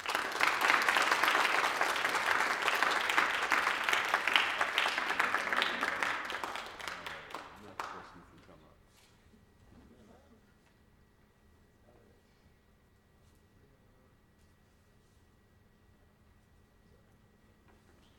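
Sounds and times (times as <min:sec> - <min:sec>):
audience applause: 0:00.0 - 0:08.2.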